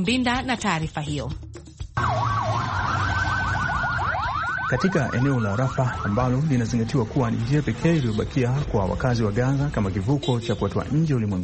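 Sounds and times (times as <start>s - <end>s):
speech: 0.0s - 1.4s, 4.7s - 11.4s
ambulance siren in Gaza near Rafah: 2.0s - 10.0s.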